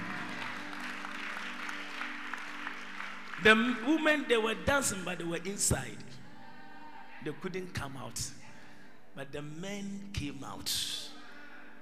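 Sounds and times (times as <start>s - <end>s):
audience clapping: 0.0s - 5.2s
speech: 3.4s - 6.1s, 7.2s - 8.4s, 9.2s - 11.0s.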